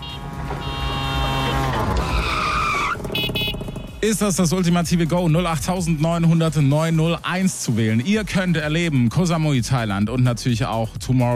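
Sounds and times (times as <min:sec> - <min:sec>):
tire squealing skid: 0:00.0 - 0:03.7
tuk-tuk motor droning in a radio station sound effect: 0:00.0 - 0:04.8
speech: 0:04.0 - 0:11.3.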